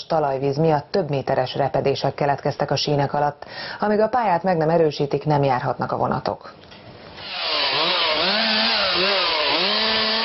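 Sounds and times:
speech: 0.0 - 6.7
chainsaw cutting trees along railway embankment: 7.2 - 10.2.

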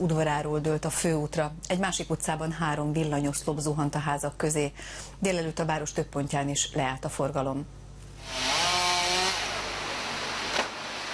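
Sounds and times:
speech: 0.0 - 8.6
firefighters' chainsaw cutting tree branches in a busy Bucharest street: 8.2 - 11.1.

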